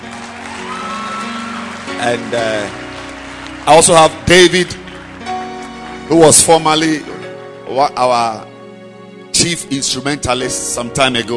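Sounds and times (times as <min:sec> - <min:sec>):
audience clapping hands: 0:00.0 - 0:07.3
speech: 0:02.0 - 0:02.8, 0:03.6 - 0:04.8, 0:06.1 - 0:07.1, 0:07.7 - 0:08.5, 0:09.3 - 0:11.3.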